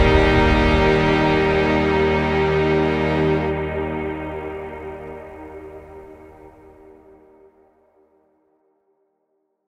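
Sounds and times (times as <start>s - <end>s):
cinematic music: 0.0s - 7.2s.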